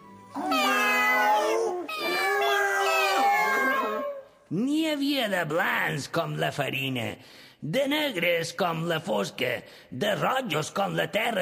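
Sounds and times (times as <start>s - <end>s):
cats meowing: 0.4s - 4.3s
speech: 5.0s - 11.4s.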